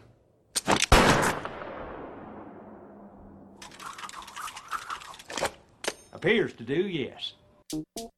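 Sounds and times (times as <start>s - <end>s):
gunshots striking ironwork: 0.7s - 2.8s
speech: 6.2s - 7.9s.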